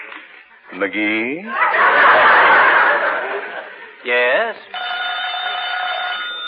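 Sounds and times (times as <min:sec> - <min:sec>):
laughter: 0:00.6 - 0:04.6
speech: 0:00.9 - 0:01.8
telephone ringing with metallic bell: 0:04.7 - 0:06.4.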